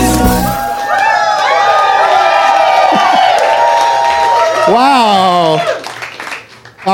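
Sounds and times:
audience cheering and whooping: 0:00.2 - 0:06.1
audience clapping: 0:02.6 - 0:04.8, 0:05.5 - 0:06.9.

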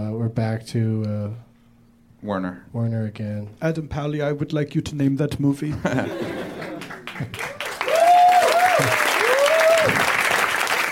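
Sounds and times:
speech: 0:00.3 - 0:01.5, 0:02.2 - 0:06.4, 0:07.2 - 0:07.5
laughter: 0:05.7 - 0:07.4
audience applause: 0:06.2 - 0:10.8
voices whooping: 0:07.8 - 0:10.1.

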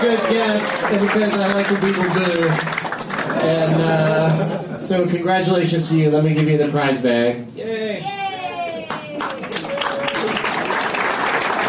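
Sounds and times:
tepid applause: 0:00.0 - 0:04.5, 0:08.4 - 0:11.6
speech: 0:00.0 - 0:08.2
laughter: 0:03.1 - 0:05.2.

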